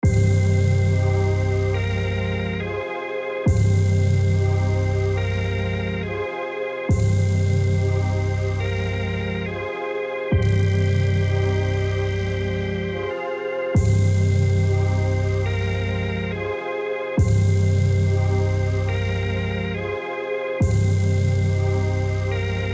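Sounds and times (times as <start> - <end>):
Omni organ: 0.0 - 22.7.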